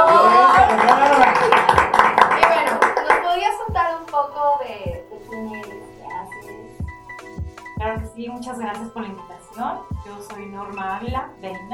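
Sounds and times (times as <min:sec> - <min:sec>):
crowd cheering: 0:00.0 - 0:02.9
audience applause: 0:00.0 - 0:03.3
speech: 0:10.2 - 0:11.7.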